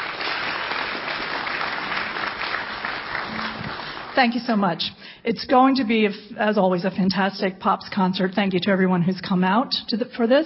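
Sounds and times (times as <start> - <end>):
large audience applause: 0.0 - 4.2
speech: 4.2 - 10.4.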